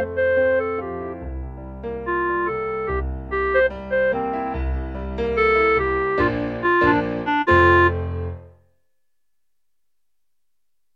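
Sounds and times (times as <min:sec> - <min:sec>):
clarinet: 0:00.0 - 0:08.6.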